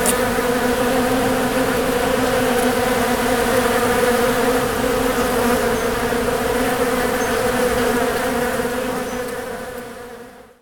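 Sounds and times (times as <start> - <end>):
many bees humming in a thick steady buzz: 0.0 - 10.4.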